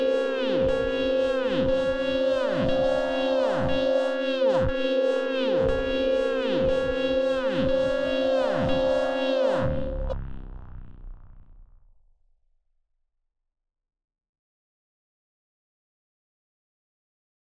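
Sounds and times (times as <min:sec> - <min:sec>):
mutating loops: 0:00.2 - 0:11.5.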